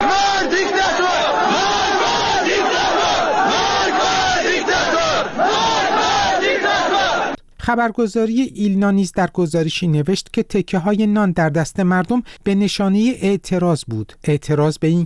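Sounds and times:
crowd chanting protest slogans at a funeral procession in Kurdistan: 0:00.0 - 0:07.4
speech: 0:07.7 - 0:15.0.

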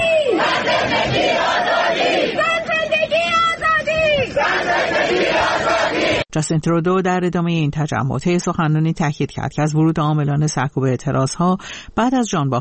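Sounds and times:
crowd chanting a slogan at a solidarity rally: 0:00.2 - 0:06.3
speech: 0:06.3 - 0:12.5.

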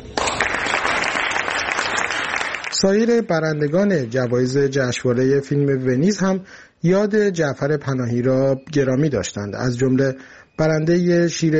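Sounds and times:
audience applause for filmmakers at the Venice Film Festival: 0:00.0 - 0:03.8
speech: 0:02.8 - 0:11.5.

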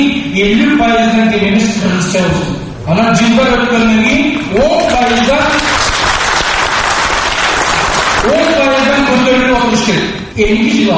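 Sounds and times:
speech: 0:00.4 - 0:05.8, 0:08.2 - 0:10.9
seated audience applauding at the end of a deputy's speech: 0:04.5 - 0:08.9.

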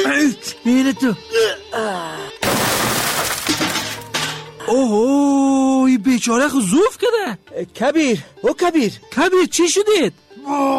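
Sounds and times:
speech: 0:00.0 - 0:02.2, 0:04.7 - 0:10.7
door being smashed in: 0:02.4 - 0:04.4.

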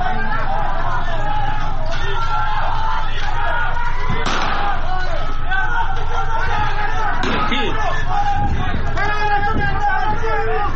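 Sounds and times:
crowd shouting: 0:00.0 - 0:10.7
gunfire on street protesters in Fooladshahr, Isfahan: 0:04.2 - 0:04.8, 0:07.2 - 0:07.6.

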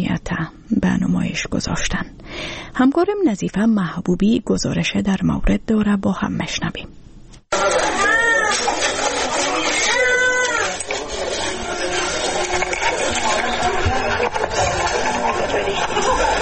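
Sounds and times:
speech: 0:00.0 - 0:07.8
hungry newborn babies crying in hospital: 0:07.6 - 0:10.8
laughter: 0:10.9 - 0:16.3.

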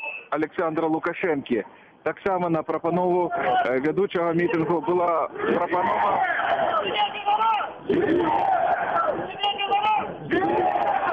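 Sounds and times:
speech: 0:00.3 - 0:08.7
large crowd chanting at a street rally: 0:05.3 - 0:11.1.

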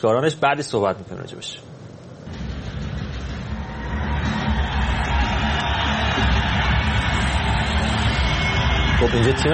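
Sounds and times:
speech: 0:00.0 - 0:01.7, 0:09.0 - 0:09.5
crowd cheering for arriving team: 0:02.3 - 0:09.5.

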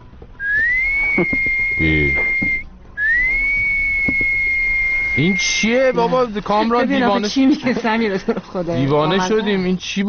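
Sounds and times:
person whistling a tune: 0:00.4 - 0:05.6
speech: 0:01.2 - 0:02.5, 0:05.2 - 0:10.0.

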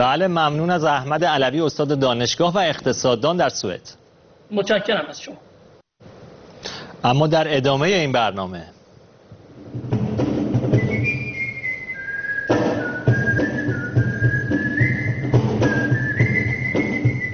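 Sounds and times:
speech: 0:00.0 - 0:05.5, 0:07.0 - 0:08.8
noise: 0:00.0 - 0:17.3
whistling by whistle players at a gathering in Japan: 0:10.7 - 0:17.3.

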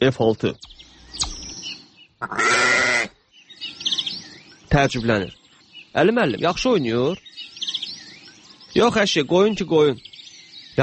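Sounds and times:
speech: 0:00.0 - 0:00.7, 0:02.2 - 0:02.6, 0:04.7 - 0:07.3, 0:08.7 - 0:10.1
sheep bleating: 0:02.2 - 0:03.2.

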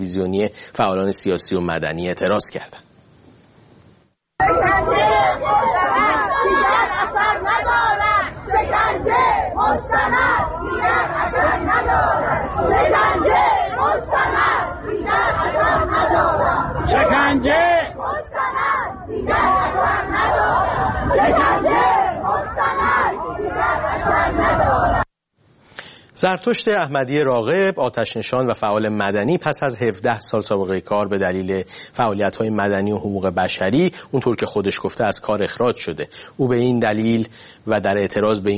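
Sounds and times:
speech: 0:00.0 - 0:02.8, 0:26.2 - 0:38.5
protest crowd of retirees chanting slogans: 0:04.4 - 0:25.1.

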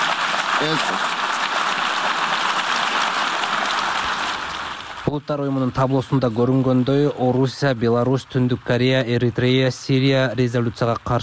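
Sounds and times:
diplomats applauding in the UN General Assembly hall after a vote result: 0:00.0 - 0:05.1
speech: 0:00.6 - 0:01.1, 0:05.1 - 0:11.2.

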